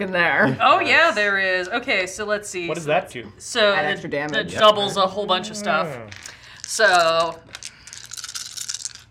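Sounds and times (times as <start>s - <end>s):
speech: 0.0s - 7.6s
handful of dice being rolled: 6.1s - 9.0s.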